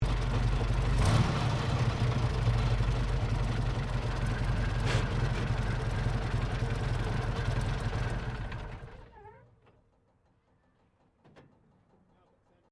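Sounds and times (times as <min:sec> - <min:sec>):
British Centurion main battle tank primary engine shutdown: 0:00.0 - 0:09.9.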